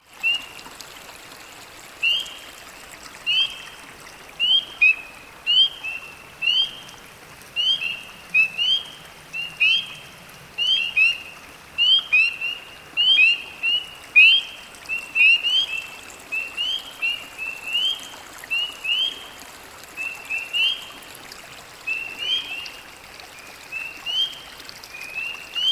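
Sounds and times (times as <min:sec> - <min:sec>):
spring peepers calling: 0:03.3 - 0:03.7, 0:04.4 - 0:06.9, 0:07.6 - 0:19.2, 0:20.0 - 0:20.9, 0:21.8 - 0:22.8, 0:23.6 - 0:25.6.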